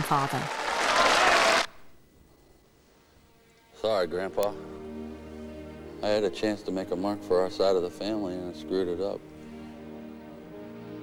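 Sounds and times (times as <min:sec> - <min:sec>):
peers in the House of Lords cheering and clapping: 0:00.0 - 0:01.7
speech: 0:00.1 - 0:01.1, 0:03.8 - 0:04.7, 0:06.0 - 0:09.3.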